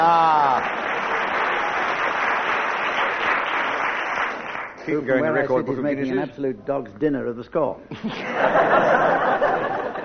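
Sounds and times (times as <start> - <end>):
audience applause: 0.0 - 4.8
speech: 4.8 - 9.7
laughter: 7.9 - 10.0.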